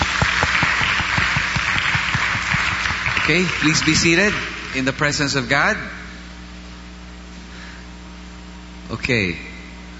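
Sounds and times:
audience applauding: 0.0 - 5.4
speech: 3.2 - 6.0, 9.0 - 9.5.

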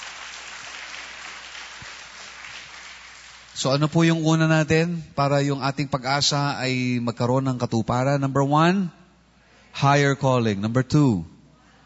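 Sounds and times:
church congregation applauding: 0.0 - 4.0
speech: 3.6 - 9.0, 9.8 - 11.3.

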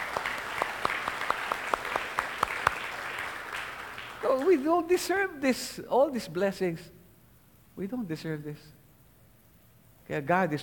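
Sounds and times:
congregation clapping at a Christmas-season religious gathering: 0.0 - 5.2
speech: 4.2 - 7.0, 7.8 - 8.8, 10.1 - 10.6.

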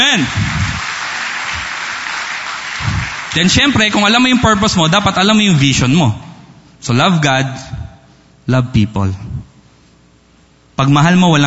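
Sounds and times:
speech: 0.0 - 0.6, 3.4 - 7.8, 8.5 - 9.3, 10.8 - 11.4
audience clapping loudly: 0.0 - 4.8.

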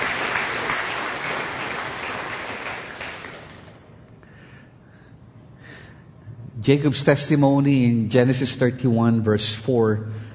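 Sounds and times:
congregation applauding in church: 0.0 - 3.9
speech: 6.6 - 10.2.

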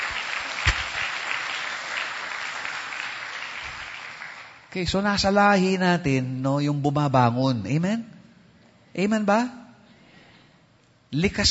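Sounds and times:
church congregation clapping: 0.0 - 4.8
speech: 4.7 - 8.1, 9.0 - 9.6, 11.1 - 11.5.

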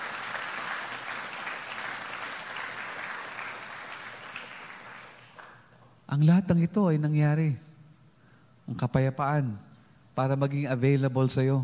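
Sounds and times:
congregation applauding the Lord during a church service: 0.0 - 5.9
speech: 6.1 - 7.6, 8.7 - 11.6.

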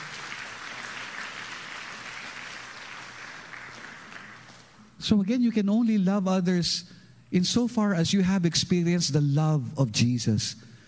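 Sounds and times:
church congregation applauding: 0.0 - 5.0
speech: 5.0 - 10.7.

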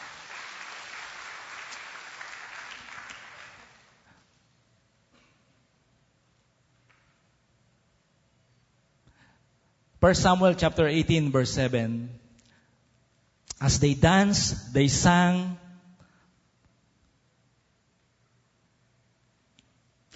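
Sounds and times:
church congregation clapping during a service: 0.0 - 4.2
speech: 10.0 - 12.2, 13.6 - 15.6.

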